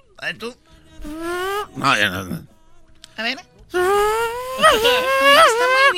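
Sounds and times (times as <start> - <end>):
speech: 1.8 - 2.5, 3.2 - 3.9, 4.7 - 5.9
voice imitating a Formula 1 car: 4.0 - 5.9.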